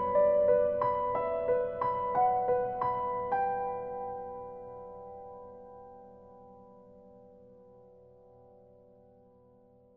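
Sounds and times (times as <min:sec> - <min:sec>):
piano music: 0:00.0 - 0:07.2.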